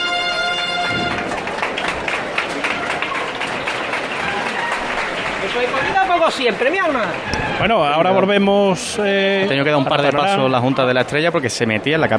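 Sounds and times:
brief tonal sound: 0.0s - 1.4s
street crowd applause: 0.0s - 8.5s
speech: 5.6s - 12.1s.

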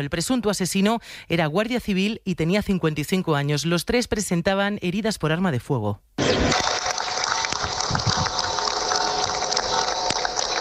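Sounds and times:
speech: 0.0s - 6.8s
crowd applauding at a street gathering: 6.4s - 10.5s.

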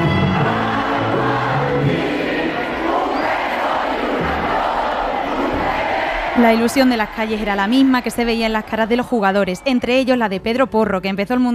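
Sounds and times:
crowd shouting and cheering at football match: 0.0s - 10.4s
speech: 6.4s - 11.5s.

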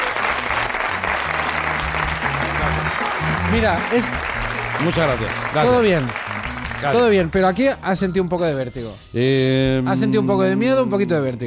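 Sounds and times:
audience applause: 0.0s - 7.4s
speech: 3.5s - 6.2s, 6.8s - 11.4s.

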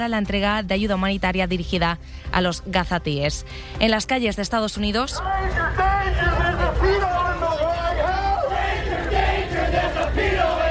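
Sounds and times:
speech: 0.0s - 7.3s
protest crowd chanting: 5.3s - 10.6s.

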